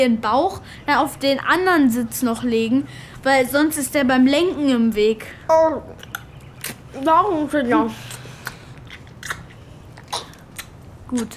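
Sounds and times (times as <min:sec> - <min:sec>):
speech: 0:00.0 - 0:06.1, 0:06.9 - 0:08.2, 0:11.1 - 0:11.3
crunchy biting and chewing of food: 0:06.0 - 0:07.0, 0:07.9 - 0:11.3.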